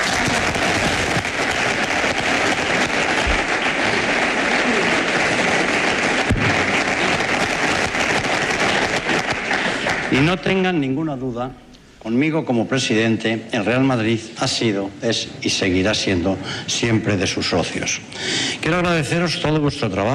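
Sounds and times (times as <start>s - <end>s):
applause: 0.0s - 10.7s
speech: 10.1s - 20.1s.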